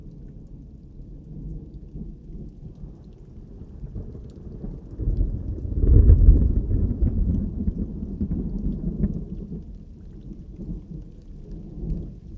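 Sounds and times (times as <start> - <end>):
thunder: 3.8 - 9.7.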